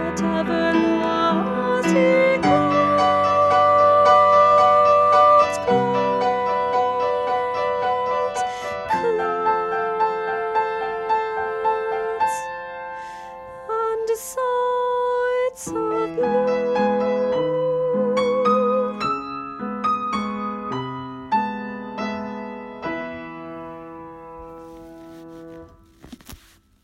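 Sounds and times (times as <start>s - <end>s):
soprano singing: 0.0s - 20.8s.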